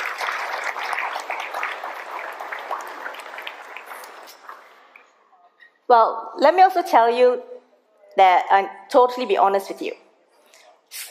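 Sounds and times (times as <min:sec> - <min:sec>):
crowd clapping: 0:00.0 - 0:05.1
speech: 0:05.9 - 0:07.5, 0:08.2 - 0:10.0.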